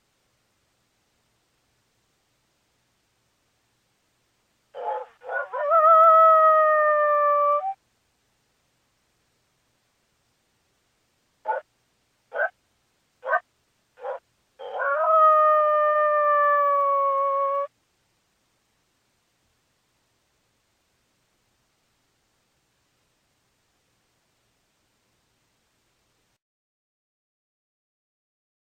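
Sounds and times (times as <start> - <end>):
coyote howling: 4.8 - 7.8, 12.3 - 12.5, 13.2 - 13.4, 14.0 - 17.7.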